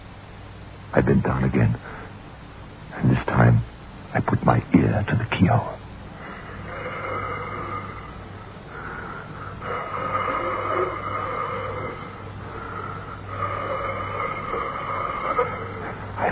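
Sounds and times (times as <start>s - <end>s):
speech: 0.9s - 2.0s, 3.0s - 5.8s
breathing behind a door: 6.2s - 16.2s.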